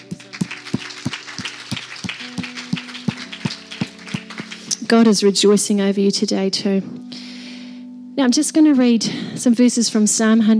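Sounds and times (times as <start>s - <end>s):
audience clapping: 0.0s - 4.9s
speech: 4.9s - 7.0s, 8.2s - 10.5s.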